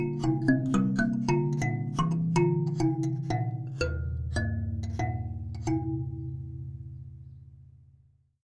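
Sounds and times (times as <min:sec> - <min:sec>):
thumb piano playing: 0:00.0 - 0:06.7.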